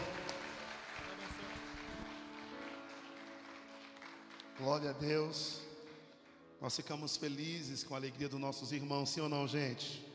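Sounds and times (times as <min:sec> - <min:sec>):
audience applauding: 0:00.0 - 0:05.1
speech: 0:04.6 - 0:05.6, 0:06.6 - 0:10.1.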